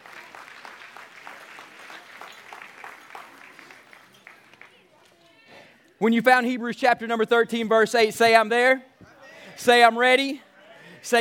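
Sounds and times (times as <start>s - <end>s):
hands clapping: 0.0s - 5.2s
speech: 6.0s - 8.9s, 9.6s - 11.1s.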